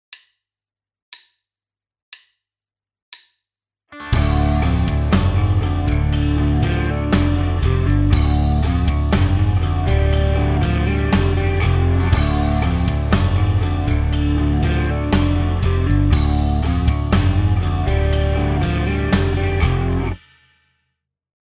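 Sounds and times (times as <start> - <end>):
rhythm: 4.0 - 20.2.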